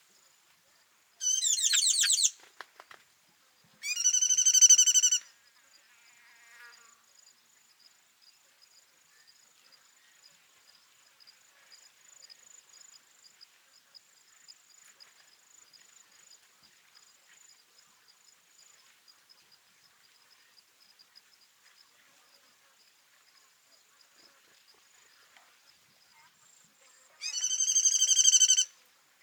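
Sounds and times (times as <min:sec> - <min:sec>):
tinkling cisticola calling in Kawelwa Zambia: 0:01.2 - 0:02.4, 0:03.8 - 0:05.2, 0:27.2 - 0:28.7.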